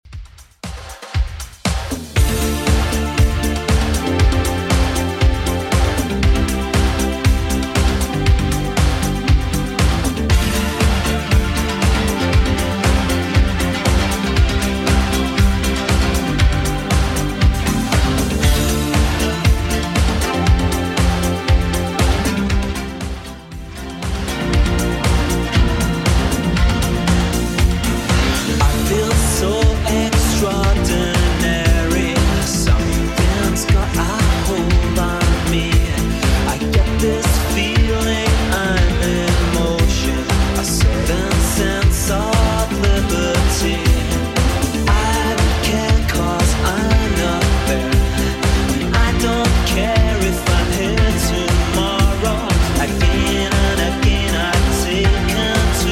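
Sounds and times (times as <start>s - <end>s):
90s style music at 118 BPM: 0.0s - 55.9s.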